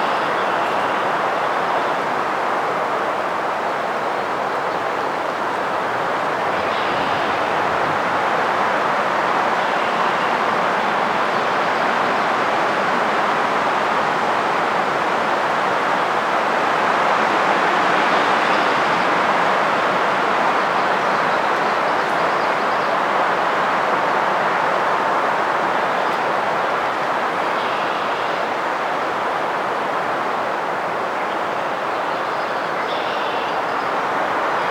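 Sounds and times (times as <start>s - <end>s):
wind in a pine forest: 0.0s - 34.6s.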